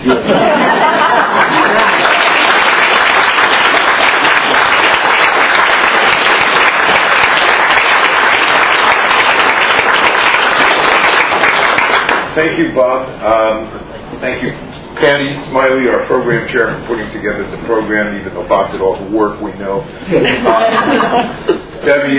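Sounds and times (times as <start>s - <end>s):
laughter: 0.0s - 2.5s, 20.0s - 21.8s
audience applause: 0.4s - 12.4s
speech: 12.4s - 22.1s.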